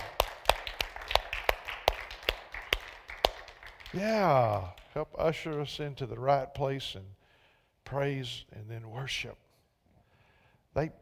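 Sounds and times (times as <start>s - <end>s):
audience clapping hands in a steady beat: 0.0s - 6.0s
speech: 3.9s - 7.2s, 7.9s - 9.4s, 10.8s - 11.0s.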